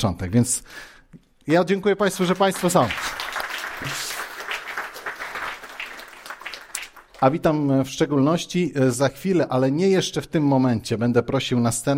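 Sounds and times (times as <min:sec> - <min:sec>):
speech: 0:00.0 - 0:03.2, 0:03.8 - 0:04.1, 0:07.2 - 0:11.9
audience applause: 0:02.1 - 0:07.3.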